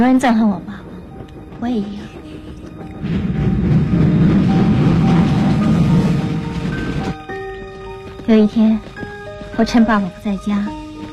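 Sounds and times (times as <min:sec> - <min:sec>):
speech: 0:00.0 - 0:00.8, 0:01.6 - 0:02.2, 0:03.0 - 0:03.4, 0:08.3 - 0:08.9, 0:09.6 - 0:10.8
train rolling along the rails: 0:00.0 - 0:11.1.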